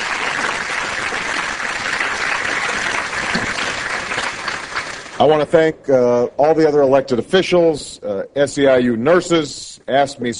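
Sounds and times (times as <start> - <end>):
audience applause: 0.0 - 5.3
speech: 5.2 - 10.3.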